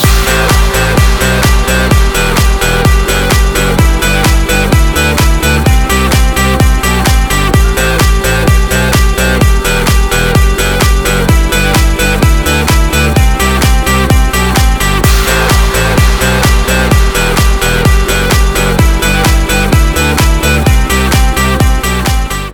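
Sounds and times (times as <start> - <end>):
phone advert music: 0.0 - 22.5.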